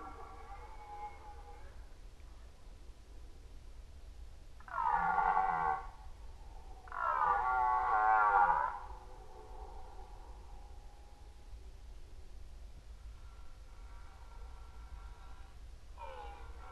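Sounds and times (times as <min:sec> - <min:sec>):
red deer roaring during the rut: 0:00.0 - 0:01.7, 0:04.7 - 0:05.9, 0:06.8 - 0:09.0.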